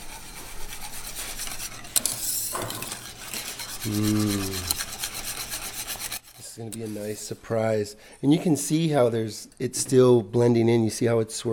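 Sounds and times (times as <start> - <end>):
spoon stirring melting 70% dark chocolate in a pot: 0.0 - 7.4
speech: 3.8 - 4.8, 6.6 - 11.5.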